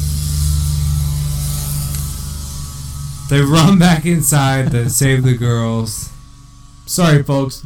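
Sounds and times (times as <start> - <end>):
mosquito-spraying truck engine droning: 0.0 - 7.6
speech: 3.3 - 6.1, 6.9 - 7.6.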